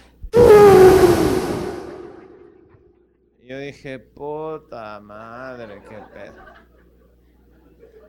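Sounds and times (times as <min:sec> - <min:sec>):
voice imitating an elephant trumpeting: 0:00.4 - 0:02.4
speech: 0:03.7 - 0:06.7.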